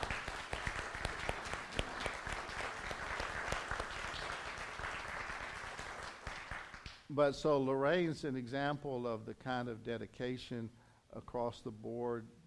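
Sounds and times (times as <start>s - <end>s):
audience applause: 0.0s - 6.9s
speech: 7.1s - 12.4s.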